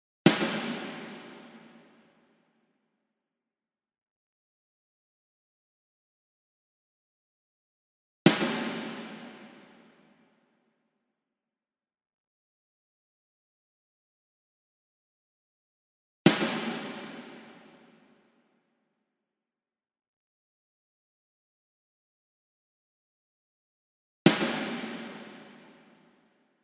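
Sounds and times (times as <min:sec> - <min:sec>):
snare drum: 0:00.3 - 0:01.8, 0:08.3 - 0:09.8, 0:16.3 - 0:17.7, 0:24.3 - 0:25.8.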